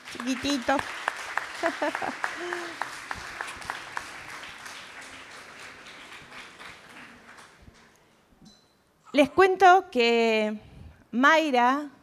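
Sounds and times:
audience applause: 0.0s - 8.0s
speech: 0.1s - 3.2s, 9.2s - 12.0s
laughter: 1.4s - 3.6s.

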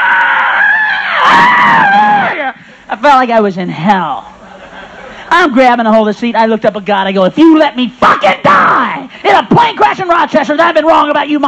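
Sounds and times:
person imitating panicked plane passengers screaming: 0.0s - 2.6s, 8.1s - 9.1s
speech: 3.0s - 4.3s, 5.3s - 8.3s, 9.0s - 11.4s.

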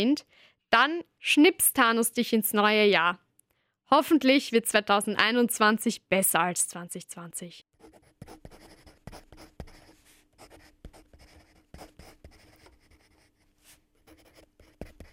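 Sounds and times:
speech: 0.0s - 3.2s, 3.9s - 9.2s
writing a Christmas list: 7.8s - 15.1s.

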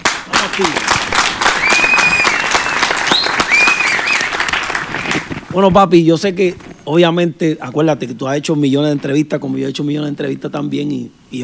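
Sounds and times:
audience applause: 0.0s - 5.4s
speech: 0.5s - 1.4s, 5.6s - 11.4s
whistles and cheers: 1.5s - 4.5s.

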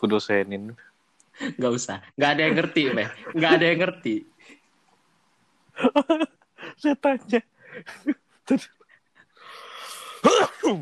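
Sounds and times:
speech: 0.0s - 4.6s, 5.8s - 8.8s, 10.2s - 10.8s
laughter: 2.4s - 3.8s, 5.8s - 6.8s
cough: 10.1s - 10.8s.

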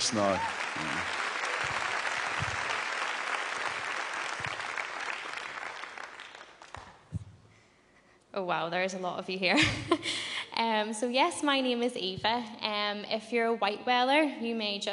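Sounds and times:
crowd applause at the Alive Belfast 2022 gathering: 0.0s - 7.0s
speech: 0.1s - 1.8s, 8.4s - 14.9s.

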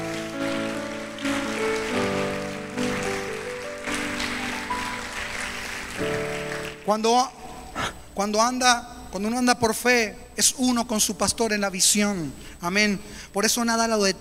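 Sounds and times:
applause: 0.0s - 7.4s
speech: 6.9s - 7.4s, 8.2s - 14.1s.

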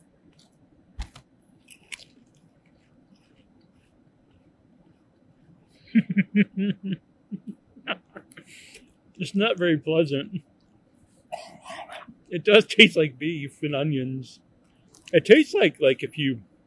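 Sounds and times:
chewing Lay's Limited Edition Beef Wellington potato chips from China: 1.7s - 2.4s
speech: 5.9s - 7.7s, 9.2s - 10.5s, 12.3s - 14.4s, 15.1s - 16.5s
laughter: 5.9s - 10.4s, 11.7s - 14.3s, 15.2s - 16.4s.

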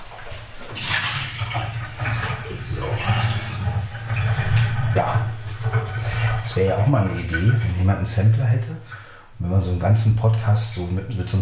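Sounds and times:
water being poured out: 0.0s - 8.1s
speech: 5.0s - 5.3s, 6.5s - 11.4s.

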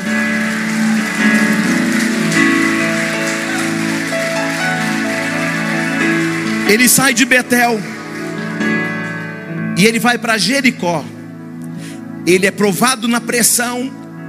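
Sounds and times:
audience applause: 0.0s - 9.2s
speech: 6.7s - 8.0s, 9.8s - 11.2s, 12.2s - 14.0s.

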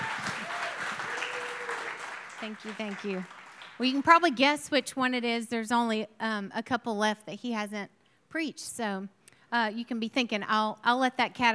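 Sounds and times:
roomful of people clapping: 0.0s - 4.3s
speech: 2.4s - 11.5s.

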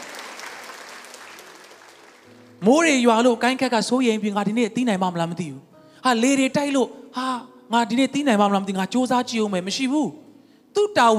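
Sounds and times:
church congregation clapping in praise during a Sunday sermon service: 0.0s - 2.6s
speech: 2.6s - 10.2s, 10.8s - 11.1s.

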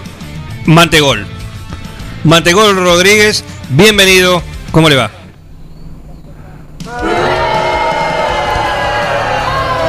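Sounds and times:
speech: 0.7s - 1.3s, 2.2s - 5.2s
crowd booing: 6.8s - 9.8s.

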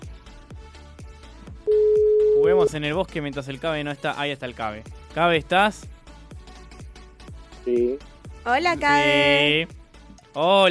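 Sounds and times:
telephone ringing tone of an outgoing call: 1.7s - 2.7s
speech: 2.4s - 6.0s, 7.7s - 9.8s, 10.4s - 10.7s.

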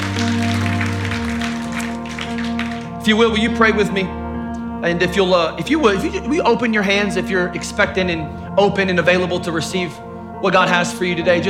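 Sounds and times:
audience clapping hands: 0.0s - 4.7s
speech: 3.1s - 4.2s, 4.8s - 11.4s.

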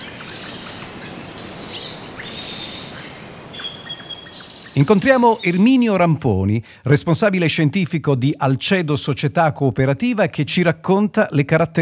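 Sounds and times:
wild birds singing in wetland oasis: 0.0s - 7.7s
hiss: 0.0s - 11.7s
speech: 4.8s - 11.7s.

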